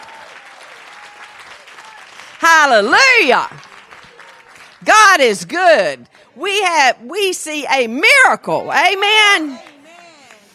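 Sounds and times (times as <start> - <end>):
church congregation clapping hands: 0.0 - 4.9, 9.3 - 10.5
speech: 2.4 - 3.6, 4.8 - 9.7.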